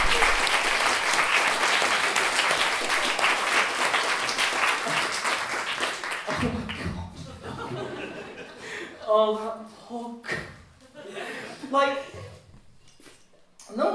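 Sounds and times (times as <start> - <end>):
round of applause: 0.0 - 6.9
laughter: 6.3 - 9.0, 10.8 - 12.3.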